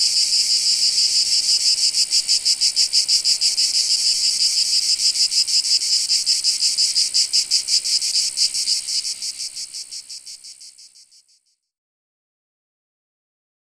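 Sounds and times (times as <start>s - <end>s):
cicadas buzzing: 0.0s - 11.5s.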